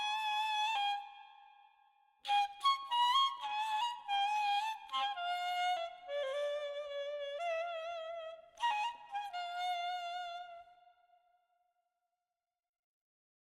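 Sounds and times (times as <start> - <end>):
ney flute playing Persian radif: 0.0 - 1.3, 2.3 - 10.7.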